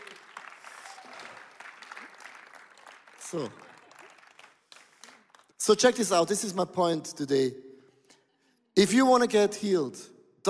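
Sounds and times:
audience applause: 0.0s - 5.5s
speech: 3.3s - 3.7s, 5.6s - 7.6s, 8.8s - 10.4s.

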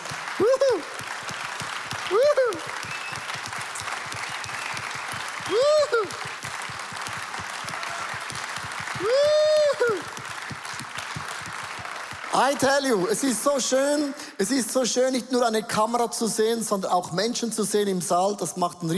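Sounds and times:
audience applause in a large room: 0.0s - 13.8s
vocal whoops and cheers: 0.3s - 1.0s, 2.0s - 6.5s, 7.6s - 8.3s, 8.9s - 10.3s
speech: 12.5s - 18.9s.

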